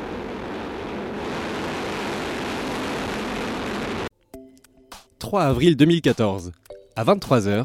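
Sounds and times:
rocket launch roar: 0:00.0 - 0:04.1
speech: 0:05.2 - 0:07.6.

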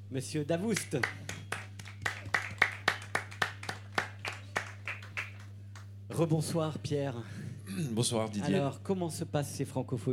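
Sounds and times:
low electrical hum: 0:00.0 - 0:10.1
speech: 0:00.1 - 0:01.3, 0:06.2 - 0:10.1
audience applauding: 0:00.7 - 0:05.5.

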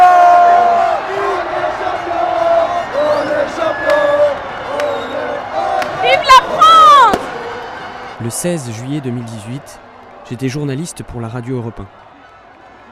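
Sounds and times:
crowd cheering on the Champs-Élysées: 0:00.0 - 0:12.8
whistles: 0:02.9 - 0:05.4
speech: 0:08.3 - 0:12.0.

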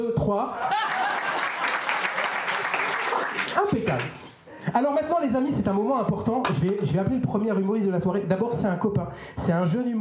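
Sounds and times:
speech: 0:00.0 - 0:00.8, 0:03.6 - 0:10.0
audience laughing: 0:00.5 - 0:02.1
audience applauding: 0:00.6 - 0:04.2.

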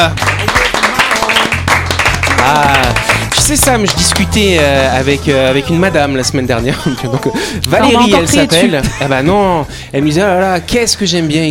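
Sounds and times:
speech: 0:00.0 - 0:00.4, 0:03.4 - 0:11.4
audience applause: 0:00.0 - 0:04.6
loud music with deep bass and voice-like melody: 0:01.5 - 0:11.2
laughter: 0:06.3 - 0:09.5.

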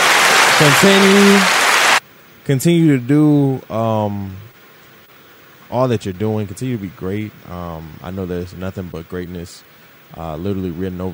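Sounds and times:
hand clapping: 0:00.0 - 0:02.0
person cheering: 0:00.0 - 0:02.0
speech: 0:00.6 - 0:01.6, 0:02.5 - 0:04.5, 0:05.7 - 0:11.1.

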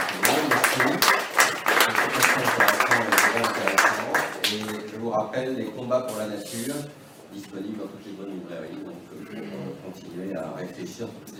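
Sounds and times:
audience applause: 0:00.0 - 0:04.8
speech: 0:05.4 - 0:11.3.

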